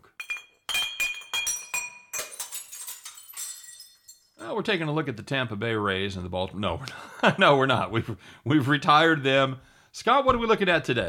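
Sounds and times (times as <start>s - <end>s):
glasses clinking for a shot: 0.0s - 4.8s
speech: 4.4s - 11.0s.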